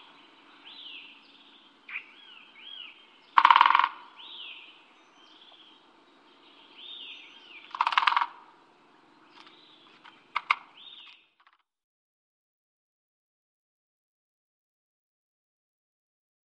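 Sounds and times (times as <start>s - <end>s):
great spotted woodpecker calling sharp kik notes: 0.0s - 11.5s.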